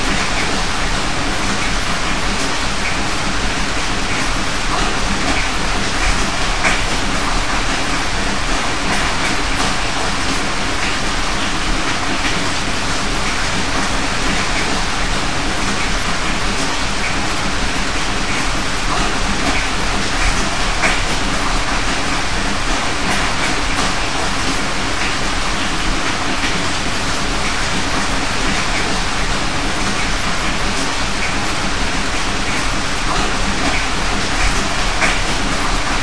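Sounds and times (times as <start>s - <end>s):
rain heard indoors: 0.0s - 36.0s.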